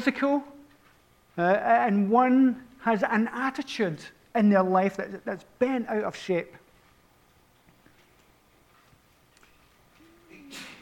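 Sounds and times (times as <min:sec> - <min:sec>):
speech: 0:00.0 - 0:00.5, 0:01.4 - 0:06.6
sneeze: 0:10.2 - 0:10.7.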